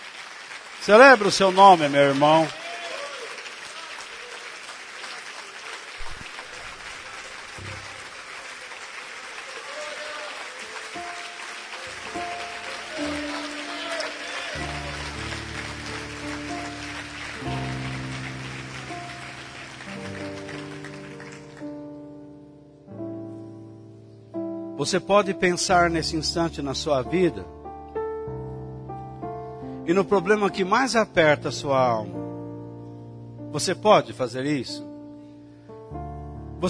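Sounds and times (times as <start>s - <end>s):
audience applause: 0.0s - 21.8s
speech: 0.8s - 2.6s, 24.9s - 27.6s, 29.9s - 32.2s, 33.5s - 34.9s.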